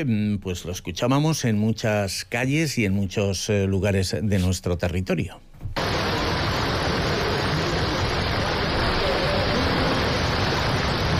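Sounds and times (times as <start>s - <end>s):
speech: 0.0s - 5.5s
heavy rain downpour: 5.8s - 11.1s.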